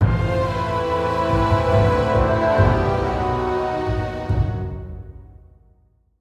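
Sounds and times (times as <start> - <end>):
musical stinger: 0.0 - 4.8.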